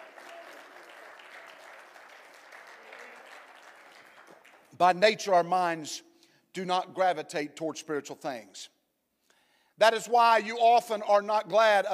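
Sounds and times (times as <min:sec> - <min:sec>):
audience clapping hands: 0:00.0 - 0:04.8
speech: 0:04.8 - 0:08.8, 0:09.8 - 0:11.9.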